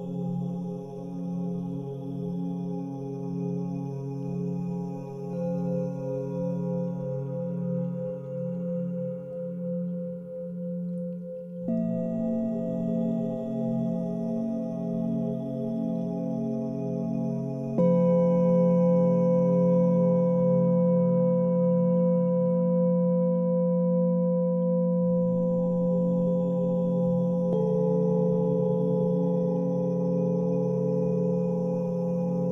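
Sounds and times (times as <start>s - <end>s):
person chanting OM: 0.0s - 32.5s
singing bowls ringing: 5.3s - 32.5s.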